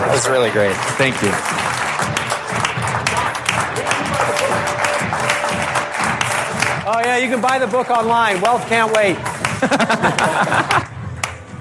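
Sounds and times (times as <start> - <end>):
audience applause: 0.0 - 11.4
speech: 0.2 - 2.2, 6.9 - 10.9
laughter: 9.4 - 11.0.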